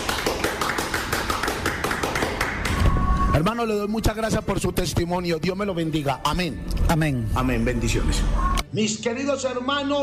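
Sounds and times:
audience applauding in rhythmic beat: 0.0s - 2.8s
speech: 3.4s - 10.0s.

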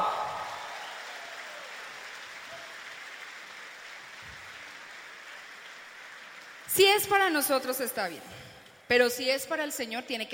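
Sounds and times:
audience applause: 0.0s - 7.4s
speech: 6.8s - 10.3s.

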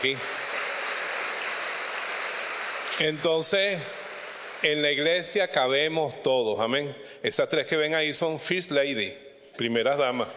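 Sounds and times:
speech: 0.0s - 0.4s, 3.0s - 4.0s, 4.6s - 10.3s
church congregation applauding the Augustinian sisters: 0.0s - 5.5s.

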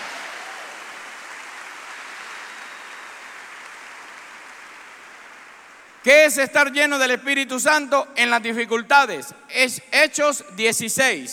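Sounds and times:
audience applauding: 0.0s - 6.0s
speech: 6.0s - 11.3s.

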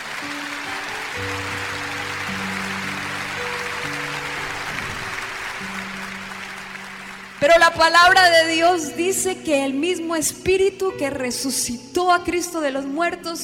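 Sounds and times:
audience applauding: 0.0s - 8.7s
speech: 7.4s - 13.4s.

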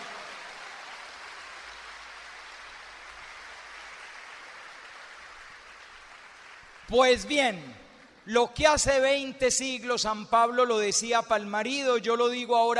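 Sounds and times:
audience applause: 0.0s - 7.3s
speech: 6.9s - 12.7s.

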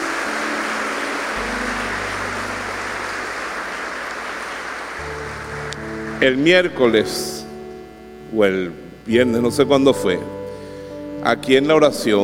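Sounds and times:
audience applause: 0.0s - 7.4s
speech: 6.2s - 7.4s, 8.3s - 10.4s, 11.2s - 12.2s.

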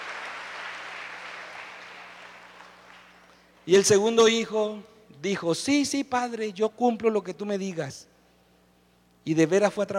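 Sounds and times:
audience applause: 0.0s - 3.2s
speech: 3.7s - 8.1s, 9.2s - 9.9s.

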